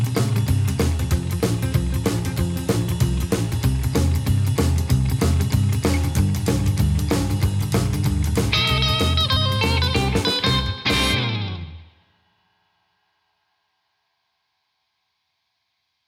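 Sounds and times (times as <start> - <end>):
fast swing music: 0.0 - 11.8.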